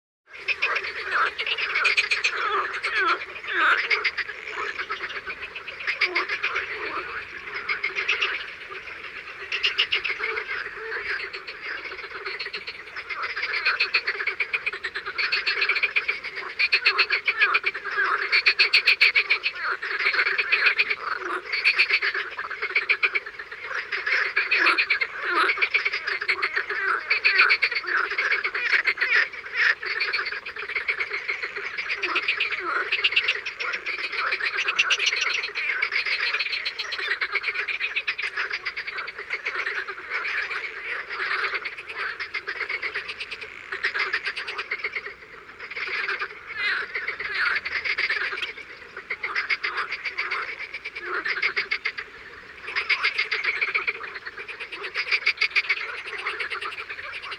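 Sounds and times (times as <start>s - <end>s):
frogs croaking in the morning: 0.3s - 57.3s.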